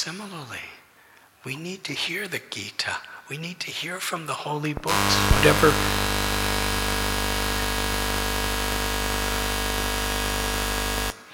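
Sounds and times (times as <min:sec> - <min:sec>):
speech: 0:00.0 - 0:00.8, 0:01.4 - 0:06.4
overtime alarm buzzer: 0:04.9 - 0:11.2.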